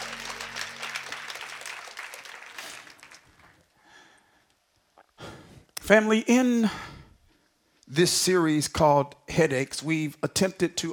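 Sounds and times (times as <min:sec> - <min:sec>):
audience clapping hands: 0:00.0 - 0:03.8
speech: 0:05.9 - 0:06.9, 0:07.9 - 0:10.9.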